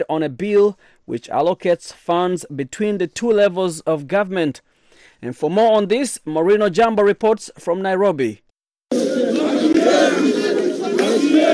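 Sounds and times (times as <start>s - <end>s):
speech: 0.0s - 8.4s
street protest march crowd chanting: 8.9s - 11.5s.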